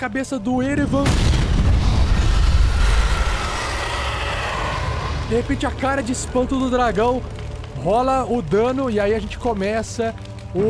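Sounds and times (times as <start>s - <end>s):
speech: 0.0s - 1.5s, 5.3s - 10.6s
fireball explosion in a tabletop role-playing game: 0.6s - 7.4s.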